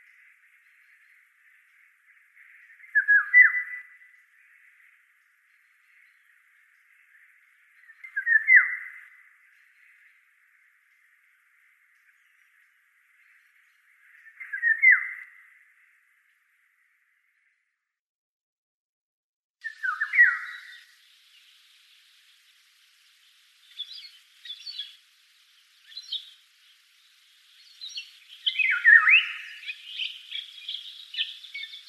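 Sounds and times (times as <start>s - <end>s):
oriole song of slurred whistled phrases: 0.0s - 11.1s, 11.9s - 15.6s, 19.6s - 21.8s, 23.2s - 31.8s.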